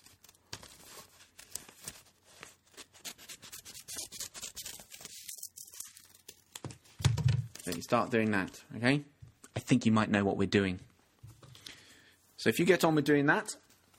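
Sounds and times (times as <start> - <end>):
scissors cutting around a paper person figure: 0.0 - 6.7
paper rustling: 0.0 - 8.6
speech: 7.7 - 9.1, 9.7 - 10.9, 12.4 - 13.6.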